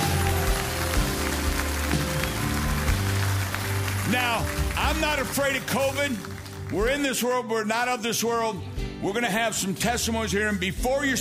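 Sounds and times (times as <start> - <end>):
audience clapping: 0.0 - 7.3
speech: 4.1 - 11.1.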